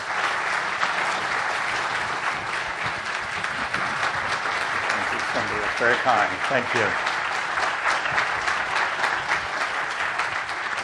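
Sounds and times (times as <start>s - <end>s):
audience applause welcoming a lecturer at a bicentennial lecture: 0.0s - 10.8s
speech: 5.8s - 7.1s.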